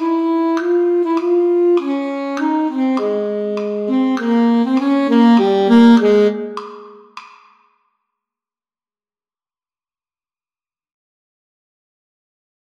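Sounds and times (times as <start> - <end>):
alto saxophone: 0.0 - 7.2.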